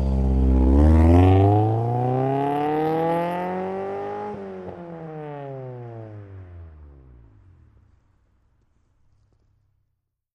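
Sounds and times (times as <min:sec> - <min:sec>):
Acura Integra engine revving: 0:00.0 - 0:05.8.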